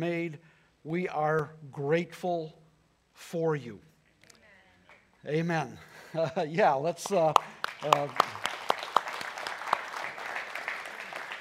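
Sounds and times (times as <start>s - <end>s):
speech: 0.0s - 2.6s, 3.2s - 3.9s, 5.2s - 8.4s
audience clapping: 6.8s - 11.3s.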